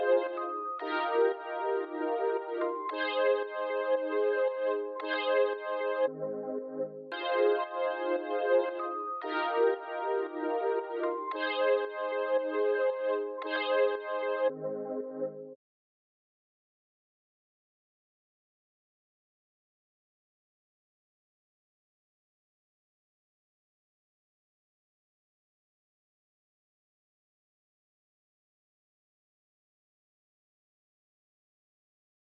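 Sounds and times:
114 BPM F minor synth: 0.2s - 15.5s.

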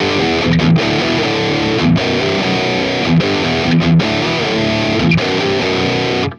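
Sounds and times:
metal guitar loop in E major: 0.0s - 6.3s.

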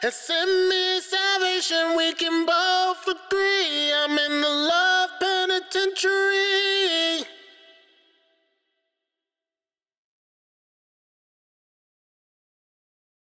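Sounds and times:
wet a cappella main vocal in G major: 0.0s - 8.2s.

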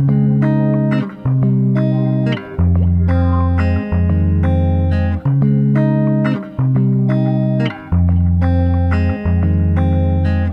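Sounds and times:
guitar loops in F minor: 0.0s - 10.5s.

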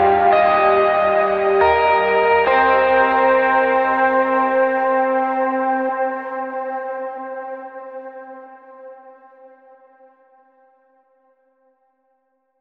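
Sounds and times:
lo-fi hip hop lead guitar in A minor seventh: 0.0s - 9.1s.

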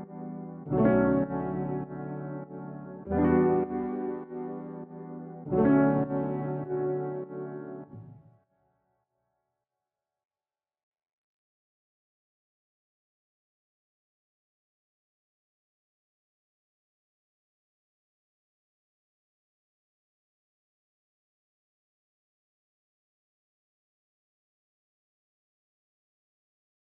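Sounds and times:
piano loop in E minor at 100 BPM: 0.0s - 8.2s.

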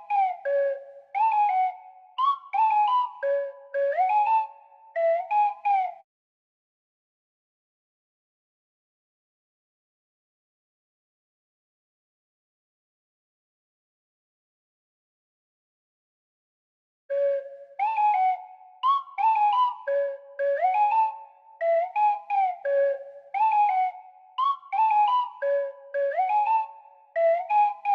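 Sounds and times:
flute melody in F sharp minor at 173 BPM: 0.0s - 6.0s, 17.1s - 27.9s.

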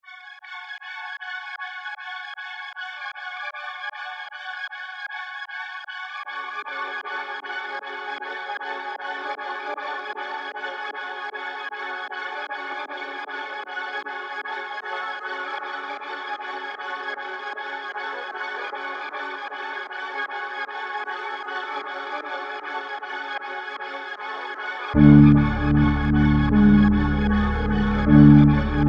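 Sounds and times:
trap melody in F sharp minor: 25.0s - 28.8s.

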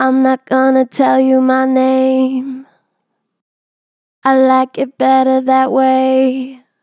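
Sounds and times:
vocals with strong natural vibrato: 0.0s - 2.8s, 4.2s - 6.7s.

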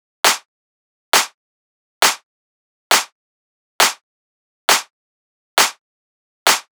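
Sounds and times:
techno clap loop at 135 BPM: 0.2s - 0.5s, 1.2s - 1.4s, 2.0s - 2.2s, 2.9s - 3.1s, 3.8s - 4.0s, 4.7s - 4.9s, 5.6s - 5.8s, 6.5s - 6.7s.

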